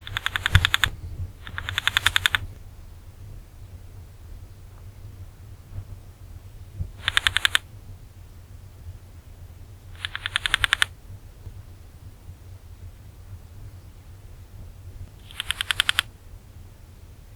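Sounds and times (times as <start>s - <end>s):
Xestobium beetle tapping: 0.0s - 2.7s, 6.8s - 7.7s, 10.0s - 11.6s, 15.2s - 16.1s.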